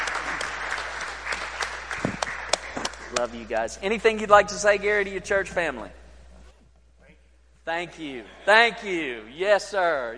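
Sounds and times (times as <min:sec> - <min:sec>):
church congregation clapping to welcome new members: 0:00.0 - 0:04.2
speech: 0:03.2 - 0:06.0, 0:07.7 - 0:10.1.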